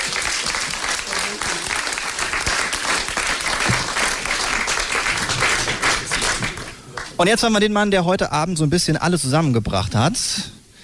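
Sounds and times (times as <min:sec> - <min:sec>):
audience applause: 0:00.0 - 0:07.3
speech: 0:07.2 - 0:10.6.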